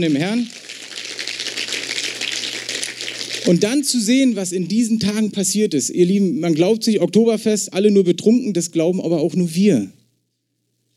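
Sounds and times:
speech: 0.0 - 0.6, 3.5 - 10.0
audience applause: 0.0 - 3.6.

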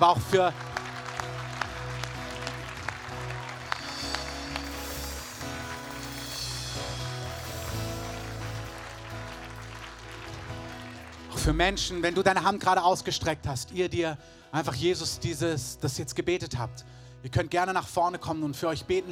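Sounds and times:
speech: 0.0 - 0.7, 11.4 - 19.1
audience applause: 0.0 - 12.2.

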